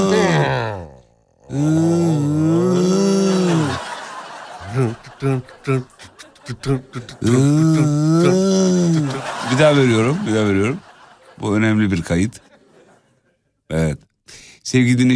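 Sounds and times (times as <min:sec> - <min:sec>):
person snoring: 0:00.0 - 0:04.0, 0:04.6 - 0:09.3
laughter: 0:02.3 - 0:13.4
speech: 0:05.2 - 0:12.5, 0:13.7 - 0:15.1.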